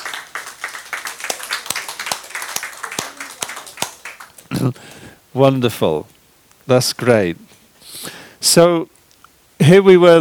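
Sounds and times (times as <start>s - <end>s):
people clapping: 0.0s - 5.1s
speech: 4.6s - 7.5s, 8.5s - 9.0s, 9.6s - 10.2s.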